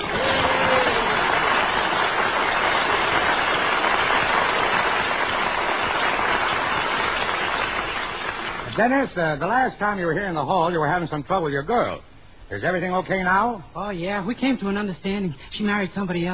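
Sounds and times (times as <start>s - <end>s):
studio audience applause: 0.0s - 8.7s
speech: 8.8s - 16.3s.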